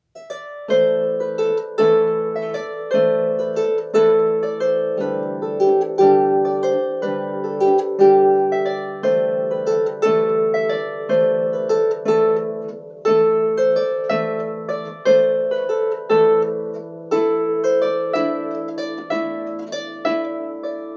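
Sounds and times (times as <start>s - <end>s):
harp: 0.0s - 20.9s.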